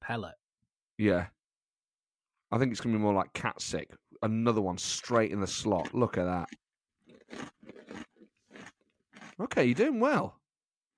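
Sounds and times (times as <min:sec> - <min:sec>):
speech: 0:00.1 - 0:00.4, 0:01.0 - 0:01.4, 0:02.5 - 0:06.6, 0:07.3 - 0:07.6, 0:09.4 - 0:10.4
chewing dry cream crackers: 0:04.9 - 0:09.8.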